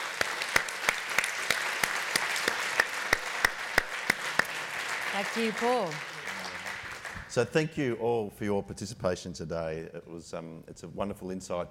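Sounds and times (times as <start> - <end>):
audience applause for the participants: 0.0 - 7.4
speech: 5.2 - 6.1, 7.4 - 11.7.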